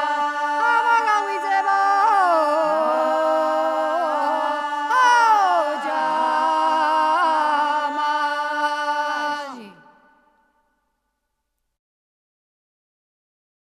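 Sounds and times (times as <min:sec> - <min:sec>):
person singing a Georgian folk song: 0:00.0 - 0:10.2.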